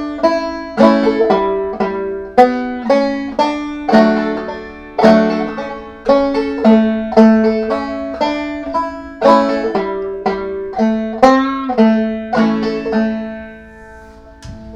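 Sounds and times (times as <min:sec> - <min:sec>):
banjo playing a tune: 0:00.0 - 0:14.7.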